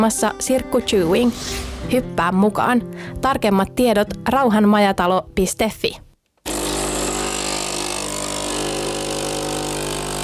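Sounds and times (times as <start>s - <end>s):
speech: 0.0s - 6.0s
espresso maker brewing with mechanical drone: 6.5s - 10.2s.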